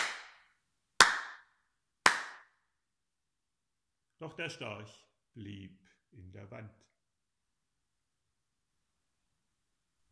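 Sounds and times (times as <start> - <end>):
innkeeper clapping hands: 0.0 - 2.6
speech: 4.2 - 6.9.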